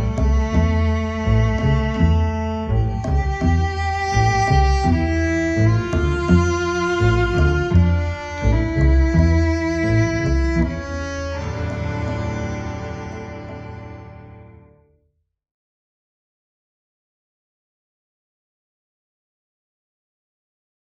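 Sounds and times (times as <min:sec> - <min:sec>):
orchestra: 0:00.0 - 0:14.9
cello: 0:00.0 - 0:15.0.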